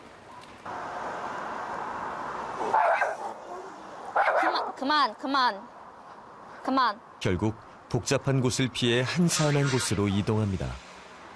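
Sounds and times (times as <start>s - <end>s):
steady noise: 0.0s - 11.3s
dogs barking: 2.6s - 4.8s
speech: 2.7s - 5.7s, 6.6s - 10.8s.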